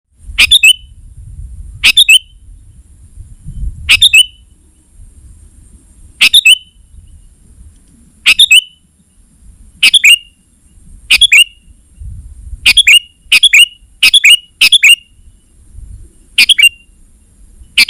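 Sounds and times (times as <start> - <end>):
sooty-headed bulbul calls: 0.4 - 1.0, 1.8 - 2.5, 3.9 - 4.6, 6.2 - 7.3, 8.2 - 9.2, 9.8 - 17.8.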